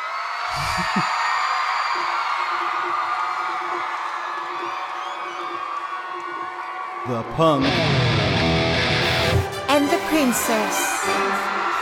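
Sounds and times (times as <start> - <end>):
live concert crowd cheering: 0.0 - 11.8
laughter: 0.5 - 1.2
speech: 0.5 - 1.2, 7.0 - 8.1, 10.1 - 11.6.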